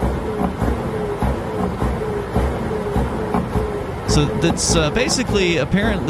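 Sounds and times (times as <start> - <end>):
truck engine revving: 0.0 - 6.0
speech: 4.2 - 6.0.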